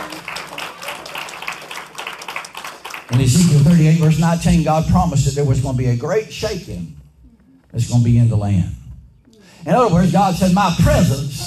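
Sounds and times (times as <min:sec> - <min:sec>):
hands clapping in praise: 0:00.0 - 0:04.6
speech: 0:03.1 - 0:07.0, 0:07.7 - 0:08.8, 0:09.6 - 0:11.3.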